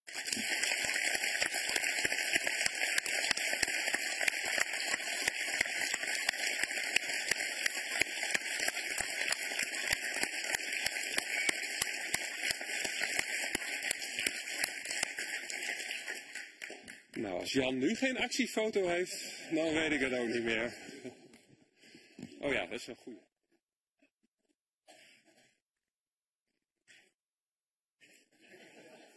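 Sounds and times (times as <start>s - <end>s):
enthusiastic audience applause: 0.0s - 18.2s
speech: 17.2s - 20.9s, 22.5s - 23.3s
laughter: 28.4s - 29.1s.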